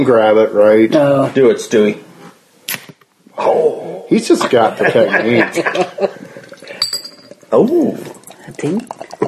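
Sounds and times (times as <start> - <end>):
speech: 0.1 - 2.1, 3.4 - 6.3, 7.5 - 9.0
laughter: 3.6 - 4.9
drink pouring into a glass: 6.3 - 9.2
glass clinks: 6.6 - 7.5.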